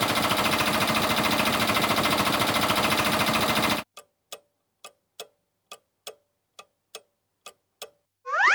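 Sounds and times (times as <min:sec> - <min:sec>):
fire brigade's portable power generator running: 0:00.0 - 0:03.8.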